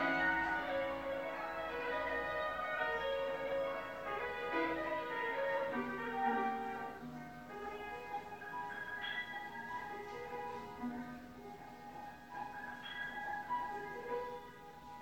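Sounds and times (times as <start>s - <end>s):
bells ringing: 0.0s - 7.0s, 7.9s - 10.6s, 12.3s - 14.6s.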